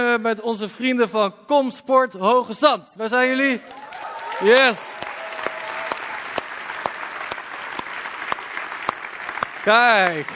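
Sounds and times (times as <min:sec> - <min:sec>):
speech: 0:00.2 - 0:04.9, 0:09.6 - 0:10.3
audience applause: 0:03.6 - 0:10.3.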